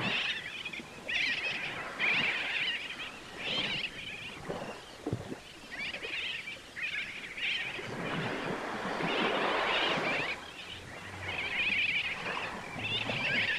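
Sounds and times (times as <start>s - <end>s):
sooty terns and noddies calling on a reef: 0.0s - 13.5s
waves on a reef: 0.0s - 13.5s.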